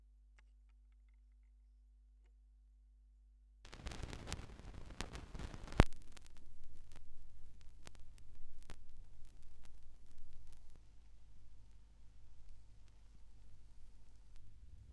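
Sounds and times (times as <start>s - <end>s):
vinyl record noise: 3.7s - 14.9s.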